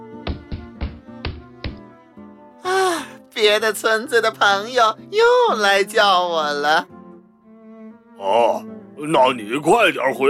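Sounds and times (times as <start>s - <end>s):
fox tail knocking on the floor: 0.2s - 1.9s
speech: 3.4s - 6.9s, 8.2s - 10.2s.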